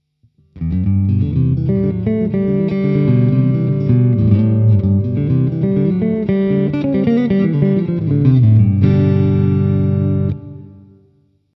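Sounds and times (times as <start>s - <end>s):
electric guitar with front pickup coil split: 0.4s - 11.3s.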